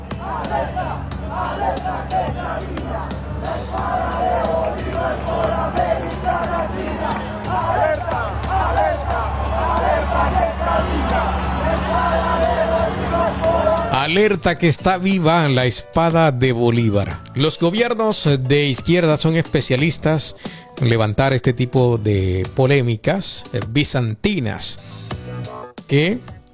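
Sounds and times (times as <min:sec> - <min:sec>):
large crowd of supporters chanting and shouting in unison: 0:00.0 - 0:14.1
speech: 0:14.0 - 0:26.5.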